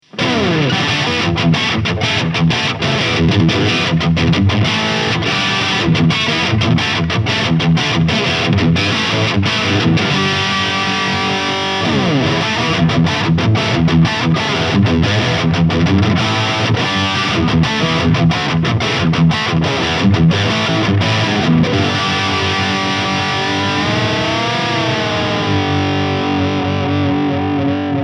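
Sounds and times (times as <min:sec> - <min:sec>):
ESP LTD Eclipse Lead electric guitar: 0:00.0 - 0:28.0.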